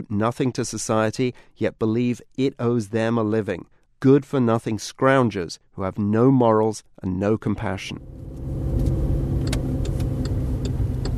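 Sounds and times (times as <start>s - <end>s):
speech: 0.0s - 8.4s
car engine rumble driving around a housing project in Dewsbury: 8.0s - 11.1s
faint ticking clicks: 9.4s - 11.1s.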